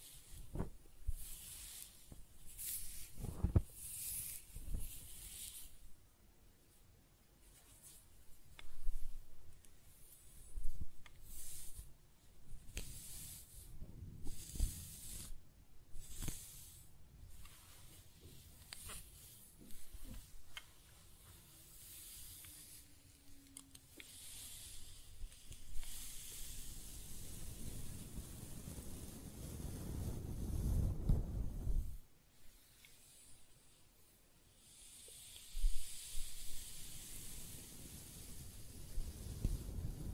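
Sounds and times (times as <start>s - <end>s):
hair scratching and brushing: 0.0s - 6.0s, 7.4s - 31.0s, 31.6s - 40.0s.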